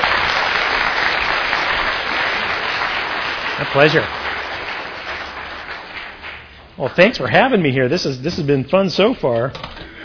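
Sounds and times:
crowd applauding: 0:00.0 - 0:06.7
speech: 0:03.6 - 0:04.2, 0:06.8 - 0:09.7.

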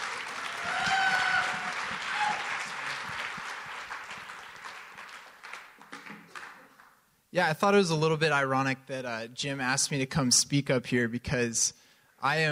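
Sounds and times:
audience applauding to welcome a speaker at an evening talk on creativity: 0:00.0 - 0:06.9
speech: 0:07.3 - 0:12.5.

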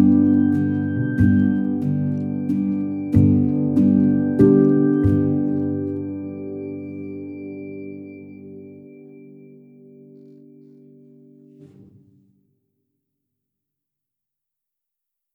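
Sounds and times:
instrumental music: 0:00.0 - 0:12.0.

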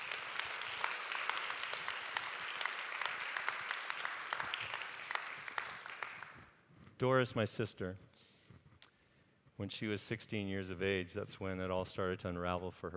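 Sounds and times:
audience applause: 0:00.0 - 0:06.4
speech: 0:07.0 - 0:08.1, 0:09.6 - 0:12.9.

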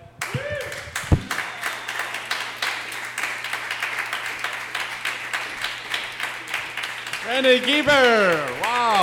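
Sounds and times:
crowd whooping: 0:00.2 - 0:02.6
audience clapping for comedian: 0:00.2 - 0:09.0
speech: 0:07.3 - 0:09.0.

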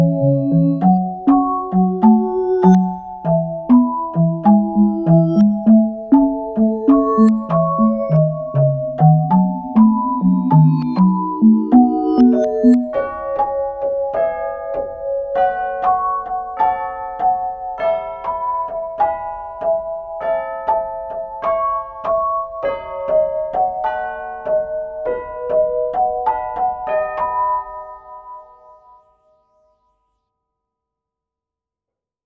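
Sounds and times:
marimba: 0:00.0 - 0:13.6
vibraphone: 0:00.0 - 0:16.8
bells: 0:00.0 - 0:29.1
chimes: 0:00.0 - 0:29.6.

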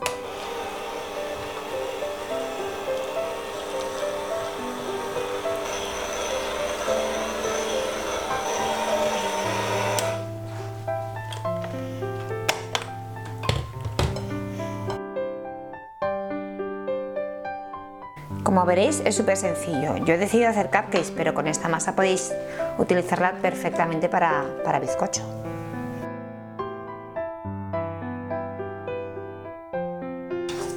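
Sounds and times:
electric mixer at low speed mixing cupcake batter with walnuts and carrot: 0:00.0 - 0:10.3
music: 0:00.0 - 0:30.7
speech: 0:18.7 - 0:25.4.

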